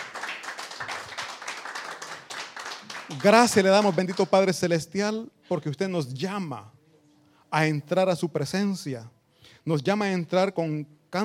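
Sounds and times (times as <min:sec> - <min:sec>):
audience applause: 0:00.0 - 0:04.2
speech: 0:03.1 - 0:06.8, 0:07.5 - 0:11.2.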